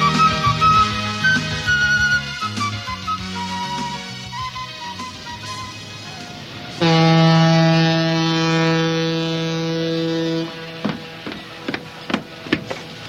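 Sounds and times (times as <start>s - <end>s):
ship bound for the Galápagos Islands sounding its horn: 0.0s - 11.7s
knocks and clatter: 10.7s - 13.0s.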